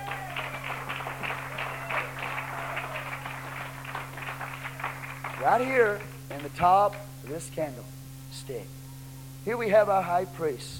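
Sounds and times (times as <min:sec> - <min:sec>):
audience hand clapping: 0:00.0 - 0:07.1
speech: 0:05.4 - 0:08.8, 0:09.4 - 0:10.7.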